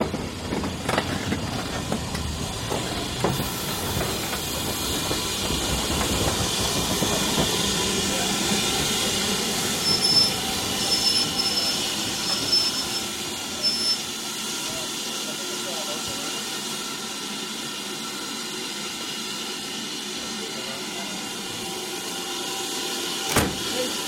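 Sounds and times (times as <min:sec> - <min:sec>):
steam train arriving at Goathland station: 0:00.0 - 0:24.0.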